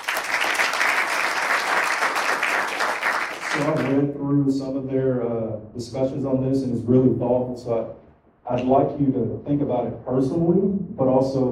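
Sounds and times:
audience applause: 0.0s - 4.0s
speech: 3.6s - 11.4s.

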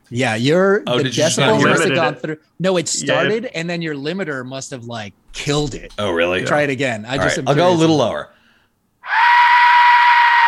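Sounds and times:
speech: 0.1s - 8.4s
death whistle scream: 9.0s - 10.4s.

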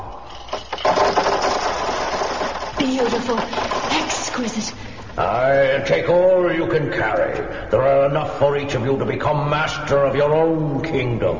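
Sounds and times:
rubies poured out of a jar: 0.2s - 4.6s
speech: 2.9s - 3.8s, 4.4s - 11.3s.

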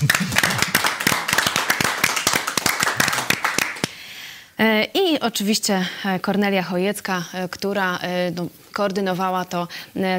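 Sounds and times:
audience applause: 0.0s - 3.9s
speech: 5.2s - 10.1s.

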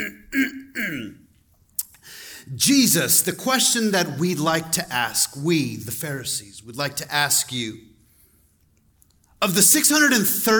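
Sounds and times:
man clearing throat: 0.0s - 1.2s
speech: 0.0s - 1.2s, 2.5s - 7.9s, 9.4s - 10.5s.

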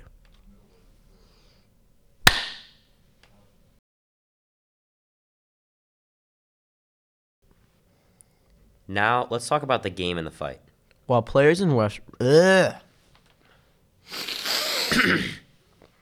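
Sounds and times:
single hand clap as edit marker: 2.3s - 2.8s
speech: 8.9s - 12.8s, 14.1s - 15.4s.

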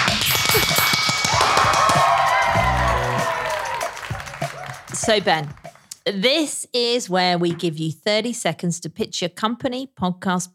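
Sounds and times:
applause: 0.2s - 5.9s
speech: 5.1s - 10.5s.

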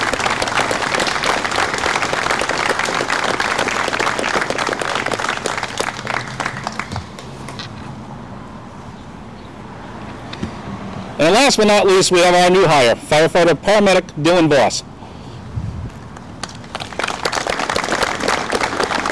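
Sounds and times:
crowd applauding: 0.0s - 7.6s, 16.4s - 19.1s
speech: 11.4s - 14.9s.

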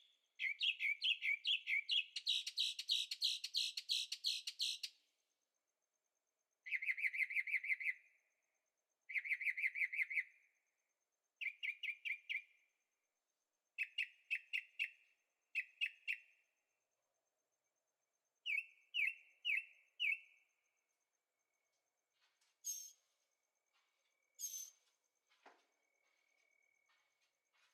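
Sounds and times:
bird chirping song: 0.0s - 5.1s, 6.6s - 8.3s, 9.0s - 10.7s, 11.3s - 12.8s, 13.6s - 16.6s, 18.2s - 21.8s, 22.4s - 27.7s.

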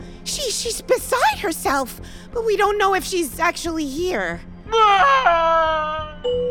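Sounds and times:
speech: 0.3s - 6.4s
wailing and moaning across an island: 4.7s - 6.3s.

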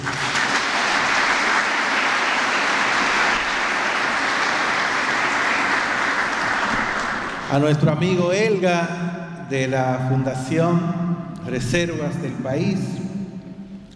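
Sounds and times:
audience applause: 0.0s - 7.6s
speech: 7.5s - 13.0s.

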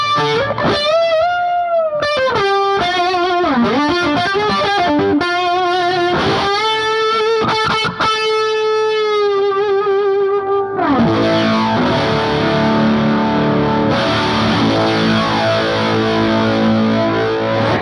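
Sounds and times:
electric guitar through a Keeley flange-like modulation pedal: 0.0s - 17.8s.

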